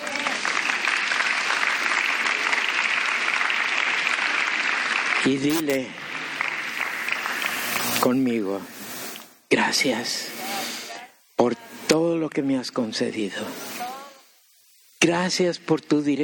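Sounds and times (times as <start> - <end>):
audience applause: 0.0 - 7.6
speech: 5.2 - 6.0, 8.0 - 8.8, 9.5 - 10.4, 12.4 - 13.7, 15.0 - 16.2.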